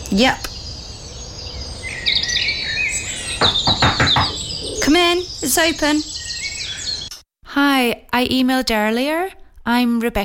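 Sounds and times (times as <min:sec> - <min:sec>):
dawn chorus of birdsong: 0:00.0 - 0:07.2
speech: 0:00.1 - 0:00.5, 0:04.9 - 0:06.1, 0:07.6 - 0:10.2.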